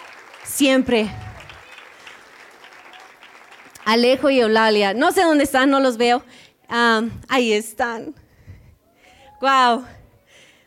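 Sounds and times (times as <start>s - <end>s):
audience applause: 0.0s - 4.3s
speech: 0.5s - 1.2s, 3.9s - 8.2s, 9.4s - 10.0s.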